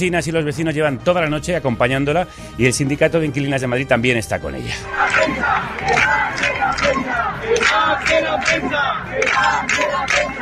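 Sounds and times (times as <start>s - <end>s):
speech: 0.0s - 10.4s
protesters shouting slogans: 4.8s - 10.4s.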